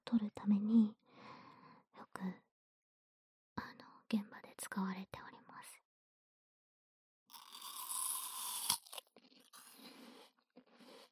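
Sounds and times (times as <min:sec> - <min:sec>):
speech: 0:00.1 - 0:01.0, 0:02.2 - 0:02.4, 0:04.1 - 0:05.8
crisp juicy bite into an apple: 0:07.3 - 0:11.1.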